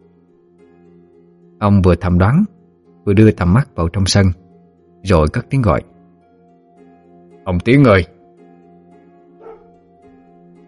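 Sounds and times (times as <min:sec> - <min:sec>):
speech: 0:01.6 - 0:04.4, 0:05.0 - 0:05.9, 0:07.4 - 0:08.1
distant dog barking: 0:09.4 - 0:09.8.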